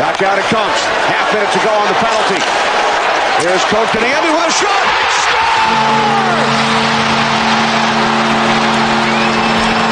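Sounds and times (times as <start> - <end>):
speech: 0.2 - 7.1
hockey crowd roaring after overtime goal: 0.4 - 9.9
low horn-like drone: 5.6 - 9.9.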